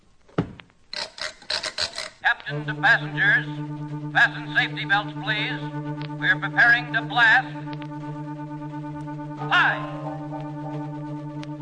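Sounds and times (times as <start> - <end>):
rocket ship door sealing thud: 0.4 - 0.7
rough rasping scrapes of rocket ship door being sealed: 0.9 - 2.2
speech: 2.5 - 8.1, 9.5 - 10.1.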